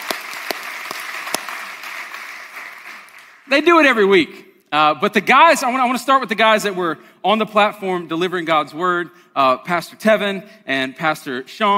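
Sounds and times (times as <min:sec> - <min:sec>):
audience applause: 0:00.0 - 0:03.4
speech: 0:03.5 - 0:11.7.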